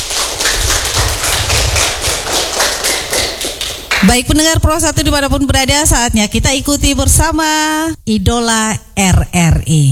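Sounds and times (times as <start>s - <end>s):
children applauding: 0.0s - 4.1s
speech: 4.0s - 9.9s.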